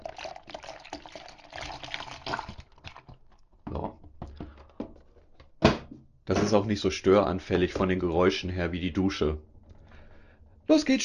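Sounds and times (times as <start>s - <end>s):
oat drink mixed with chocolate powder, swishing and sloshing: 0.0s - 3.6s
speech: 6.5s - 9.5s, 10.7s - 11.0s.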